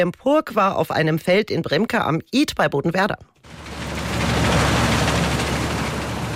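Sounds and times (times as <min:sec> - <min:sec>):
speech: 0:00.0 - 0:03.6
combine harvester threshing in field: 0:03.5 - 0:06.3.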